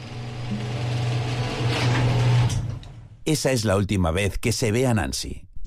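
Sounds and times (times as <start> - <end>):
garage door closing: 0.0 - 3.1
speech: 3.3 - 5.5.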